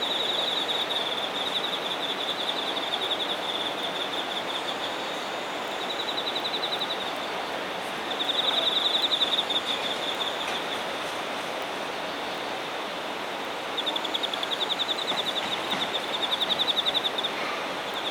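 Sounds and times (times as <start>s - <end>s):
insects singing in Shinagawa: 0.0s - 18.0s.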